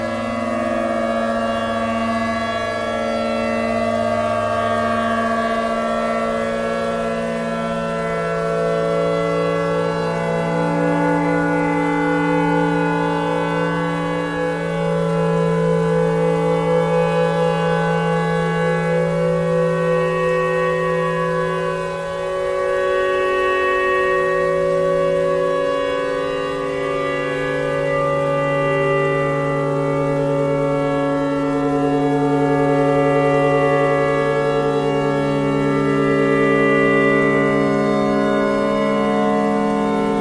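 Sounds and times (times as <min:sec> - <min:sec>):
clarinet: 0:00.0 - 0:40.1
tornado siren: 0:00.0 - 0:40.1.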